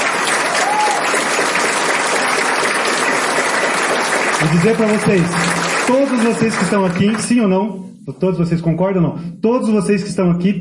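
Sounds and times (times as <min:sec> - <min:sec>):
audience applause: 0:00.0 - 0:07.4
speech: 0:04.4 - 0:10.5.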